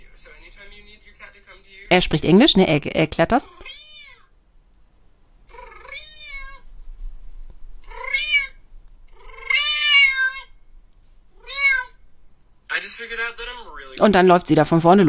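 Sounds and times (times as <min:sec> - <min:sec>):
speech: 0:00.2 - 0:03.8, 0:14.0 - 0:15.0
cat meowing in played video: 0:03.5 - 0:04.3, 0:05.5 - 0:06.7, 0:07.8 - 0:10.6, 0:11.4 - 0:12.0.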